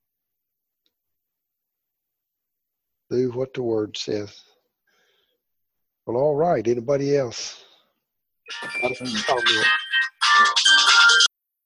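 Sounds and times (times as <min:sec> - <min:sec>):
speech: 0:03.1 - 0:04.5, 0:06.1 - 0:07.7, 0:08.5 - 0:09.8, 0:10.4 - 0:11.3
mobile phone ringtone melody: 0:08.5 - 0:11.3.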